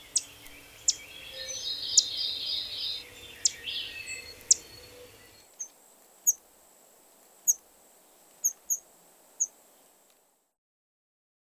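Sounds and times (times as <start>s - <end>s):
pine warbler singing: 0.0s - 6.4s, 8.4s - 8.8s.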